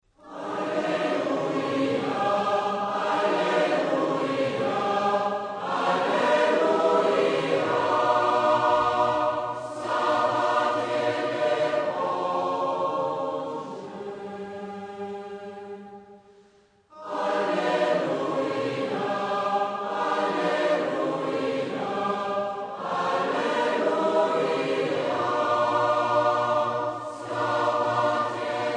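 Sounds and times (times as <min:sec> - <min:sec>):
alleluia chant: 0:00.1 - 0:28.7.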